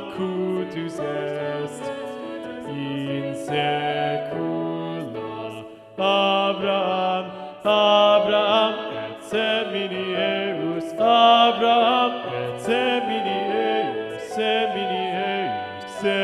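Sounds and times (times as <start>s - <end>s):
SATB choir with predominant bass voice: 0.0s - 16.2s.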